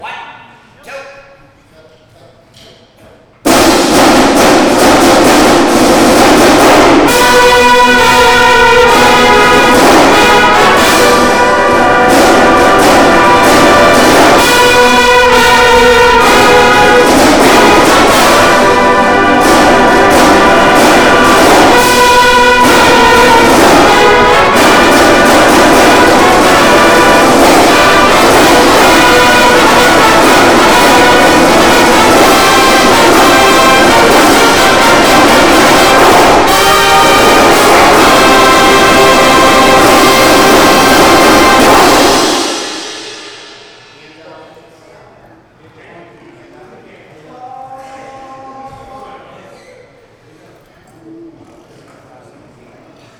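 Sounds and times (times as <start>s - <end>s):
brass ensemble run-through: 3.5s - 44.2s.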